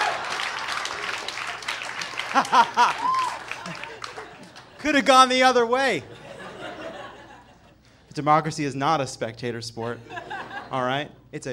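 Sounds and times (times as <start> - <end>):
audience applause: 0.0 - 4.8
laughter: 0.0 - 5.2, 5.8 - 7.9, 10.0 - 11.0
speech: 2.3 - 3.8, 4.8 - 6.1, 8.2 - 11.5.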